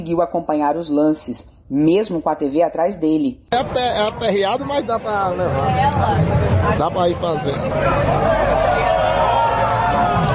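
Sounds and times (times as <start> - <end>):
speech: 0.1 - 8.8
bar crowd roaring and shouting during football match: 5.3 - 10.3.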